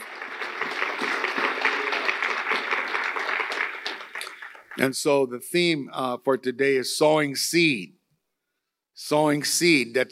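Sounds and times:
audience applause: 0:00.0 - 0:04.9
speech: 0:04.8 - 0:08.0, 0:09.1 - 0:10.0.

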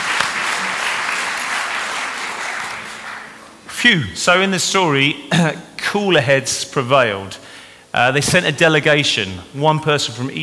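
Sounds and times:
round of applause: 0:00.0 - 0:03.8
speech: 0:03.8 - 0:10.4.

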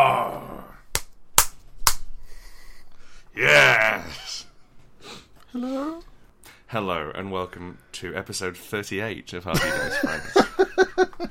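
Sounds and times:
hands slapping thighs: 0:00.9 - 0:02.2
speech: 0:03.4 - 0:04.2, 0:05.6 - 0:06.1, 0:06.7 - 0:11.3
laughter: 0:09.5 - 0:11.3.

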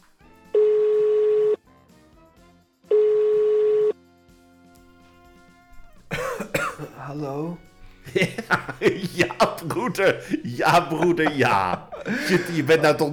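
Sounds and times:
phone call ringing tone: 0:00.6 - 0:01.6, 0:02.9 - 0:03.9
laughter: 0:06.1 - 0:13.1
speech: 0:07.1 - 0:13.1.

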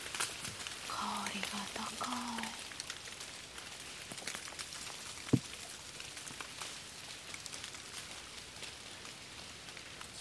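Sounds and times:
fine snow grains and large ice falling: 0:00.0 - 0:10.1
speech: 0:01.3 - 0:02.6.

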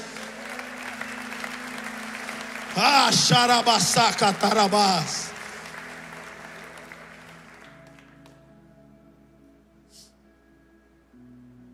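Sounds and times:
audience applause: 0:00.0 - 0:08.4
speech: 0:02.8 - 0:05.3.

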